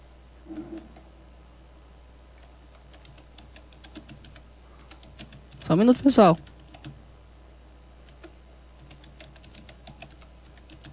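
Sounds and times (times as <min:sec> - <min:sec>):
low steady hum: 0:00.0 - 0:10.9
computer mouse clicking: 0:02.4 - 0:07.0, 0:08.0 - 0:10.9
speech: 0:05.7 - 0:06.5.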